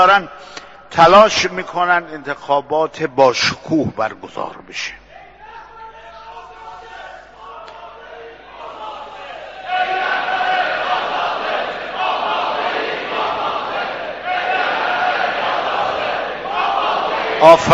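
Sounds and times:
speech: 0.0 - 5.0, 17.4 - 17.7
large crowd chanting slogans at an election rally: 7.0 - 17.7.

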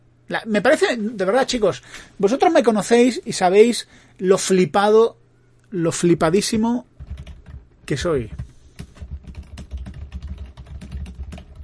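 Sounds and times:
speech: 0.3 - 6.9, 7.9 - 8.5
typing on a computer keyboard writing messages on Telegram: 7.0 - 7.6, 8.3 - 11.6.

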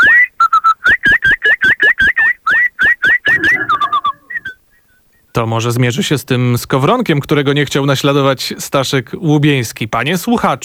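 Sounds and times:
man whistling an imitation of blackbird song: 0.0 - 5.3
speech: 5.4 - 10.6.

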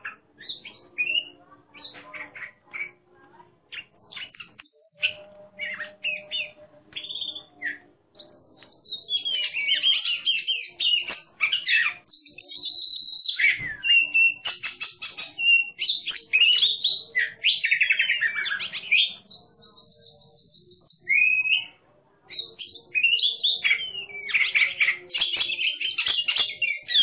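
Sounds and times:
Oriental magpie-robin competition song of varied whistles, chirps and warbled phrases: 0.0 - 27.0.

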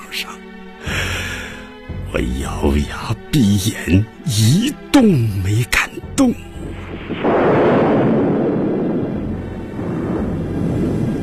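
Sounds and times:
speech: 0.1 - 0.5, 2.1 - 6.5
thunder: 6.8 - 11.2.

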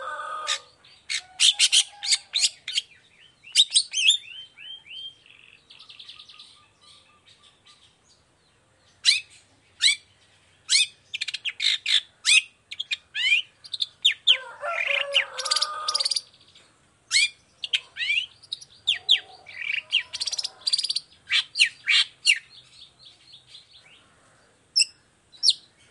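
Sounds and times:
long-tailed shrike varied song: 0.0 - 25.8.

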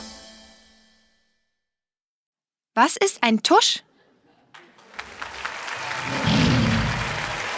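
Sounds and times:
speech: 2.8 - 3.9
audience clapping enthusiastically: 4.5 - 7.5.

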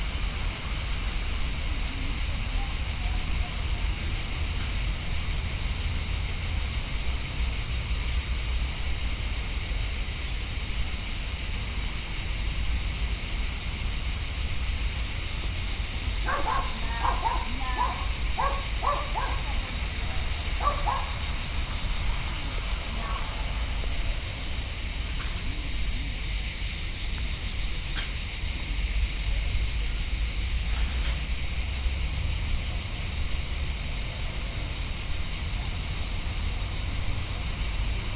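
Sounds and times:
cicadas droning: 0.0 - 38.1.

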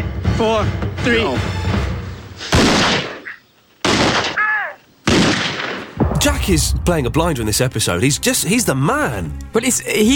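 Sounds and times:
speech: 0.4 - 1.6, 6.2 - 10.1
gunshots: 2.5 - 3.2, 3.8 - 4.4, 5.0 - 7.7.

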